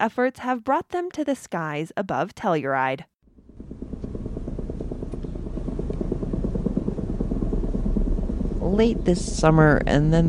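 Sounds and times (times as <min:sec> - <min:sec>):
speech: 0:00.0 - 0:03.1, 0:08.6 - 0:10.2
helicopter buzzing overhead: 0:03.3 - 0:10.2.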